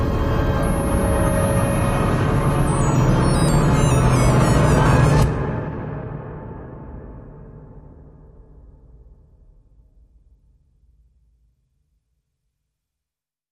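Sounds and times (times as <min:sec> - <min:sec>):
drones: 0:00.0 - 0:08.0.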